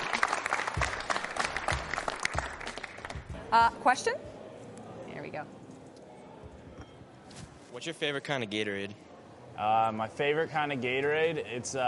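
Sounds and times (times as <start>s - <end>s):
audience applause welcoming a guest: 0.0s - 3.3s
speech: 3.5s - 4.4s, 5.3s - 5.6s, 7.7s - 9.0s, 9.6s - 11.8s.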